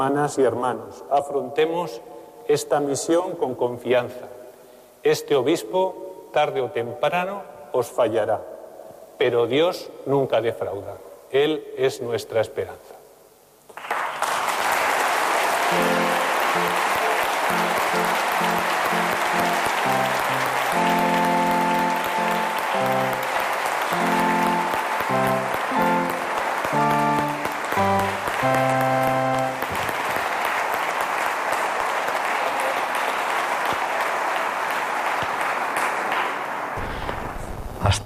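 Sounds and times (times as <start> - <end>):
speech: 0.0 - 4.4, 5.0 - 8.5, 9.2 - 13.0
festive applause: 13.7 - 36.8
organ chords: 15.0 - 30.8.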